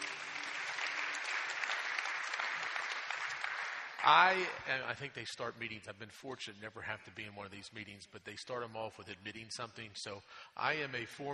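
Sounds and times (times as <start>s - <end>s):
audience clapping: 0.0s - 5.0s
speech: 4.0s - 11.3s.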